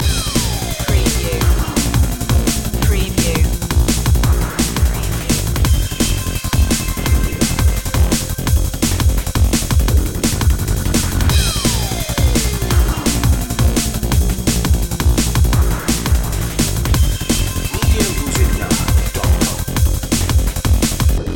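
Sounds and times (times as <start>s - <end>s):
beats loop: 0.0s - 21.2s.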